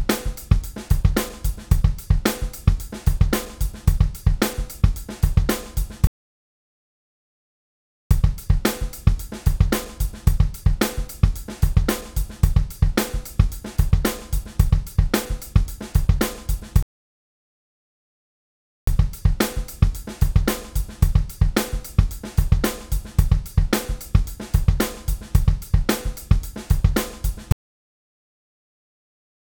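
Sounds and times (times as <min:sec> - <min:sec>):
drum loops: 0:00.0 - 0:06.1, 0:08.2 - 0:16.8, 0:18.9 - 0:27.6.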